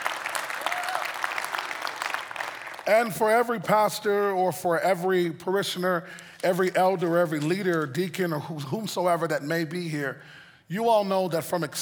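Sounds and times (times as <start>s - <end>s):
audience clapping: 0.0s - 3.8s
speech: 2.9s - 11.8s.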